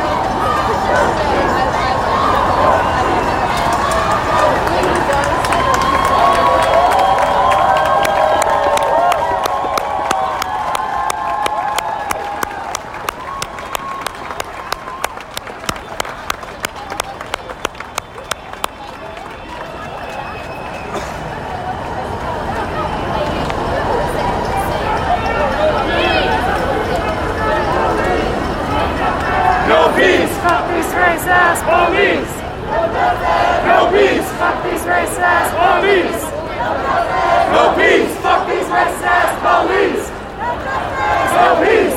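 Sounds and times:
peaceful protest crowd in New York City talking and shouting: 0.0s - 41.9s
fast regular clapping or beating: 3.6s - 20.1s.

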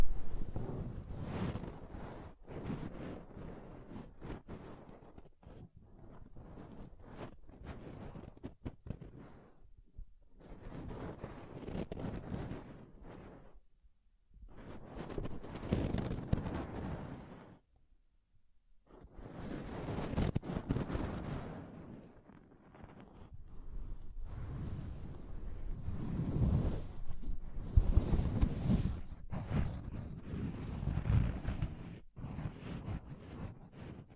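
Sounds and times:
fluffy rubbing and brushing: 0.2s - 9.7s, 10.3s - 13.6s, 14.5s - 17.6s, 18.9s - 34.1s.

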